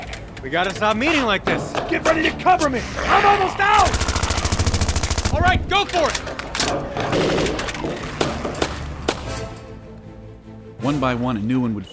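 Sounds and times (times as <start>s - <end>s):
speech: 0.4s - 4.0s, 5.3s - 8.0s, 10.8s - 11.9s
gunshots: 3.8s - 5.6s, 6.6s - 9.5s.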